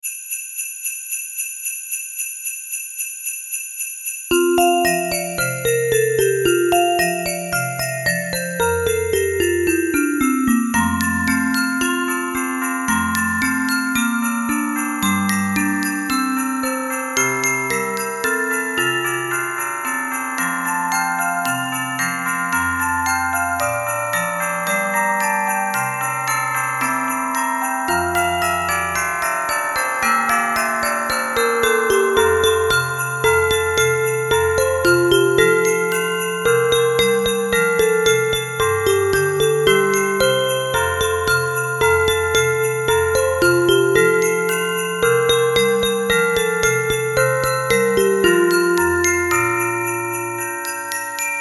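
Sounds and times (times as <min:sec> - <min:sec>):
Christmas song: 0:00.0 - 0:51.3.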